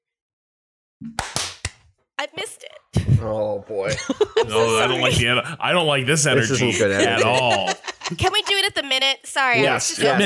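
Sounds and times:
speech: 1.0 - 1.3, 2.2 - 10.2
hand clap for audio sync: 1.1 - 1.8
laughter: 3.0 - 10.2.

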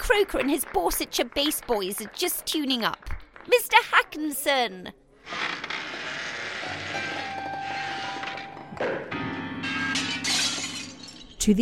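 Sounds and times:
speech: 0.1 - 5.6
grand piano crashing through plate glass window: 6.9 - 11.4.

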